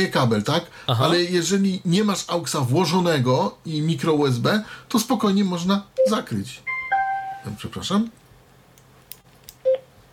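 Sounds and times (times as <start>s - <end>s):
speech: 0.0s - 6.7s, 7.4s - 8.2s
device beep when memory card inserted: 6.0s - 7.6s.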